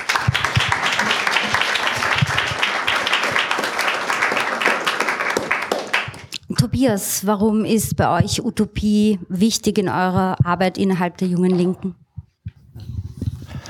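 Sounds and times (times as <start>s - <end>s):
audience applause: 0.0s - 6.3s
speech: 6.8s - 12.0s.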